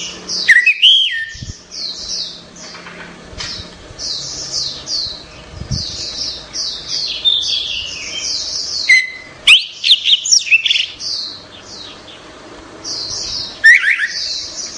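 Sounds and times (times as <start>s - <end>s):
orange-headed thrush song of slurred whistles: 0.5s - 1.5s, 8.8s - 10.7s, 13.6s - 14.3s.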